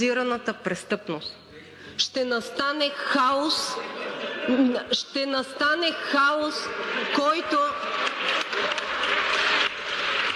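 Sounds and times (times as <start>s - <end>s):
speech: 0.0s - 7.9s
laughter: 3.4s - 10.3s
applause: 7.0s - 10.3s.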